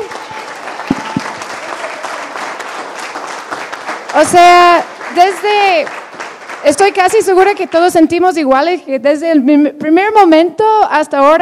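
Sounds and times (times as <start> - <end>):
audience applause: 0.0 - 7.0
speech: 4.2 - 6.0, 6.6 - 11.4.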